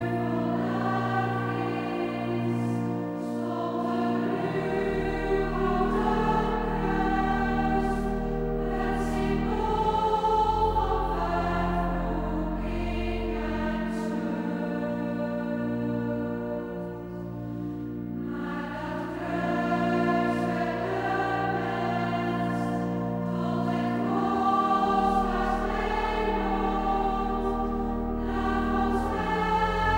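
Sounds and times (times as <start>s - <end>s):
mixed choir singing: 0.0s - 29.9s.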